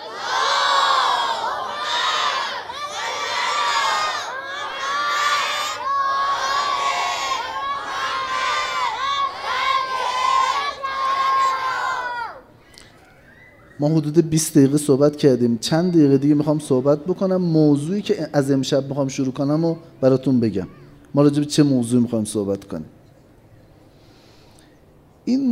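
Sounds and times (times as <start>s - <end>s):
large crowd loudly chanting the salawat blessing in unison: 0.0s - 12.4s
speech: 13.8s - 23.0s, 25.3s - 25.5s.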